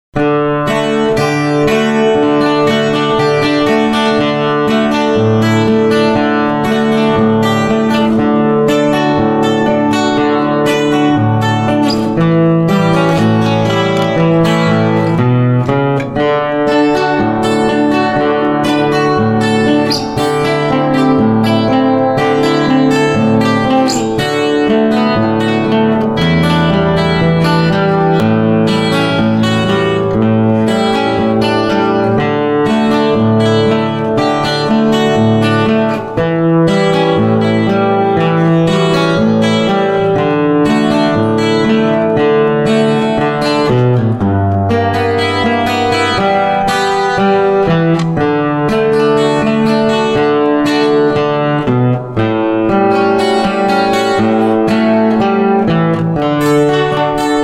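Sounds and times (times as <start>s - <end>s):
guitar rag: 0.1s - 57.4s.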